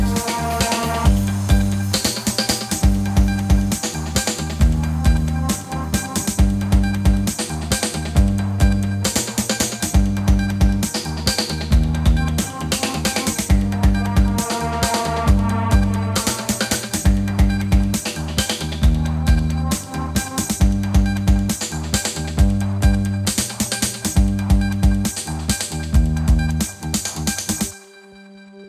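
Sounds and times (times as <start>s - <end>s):
rock funk music: 0.0s - 27.7s.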